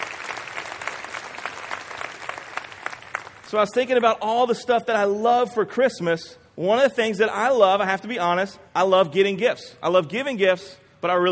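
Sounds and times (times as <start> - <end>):
audience clapping hands: 0.0 - 4.0
speech: 3.5 - 11.2.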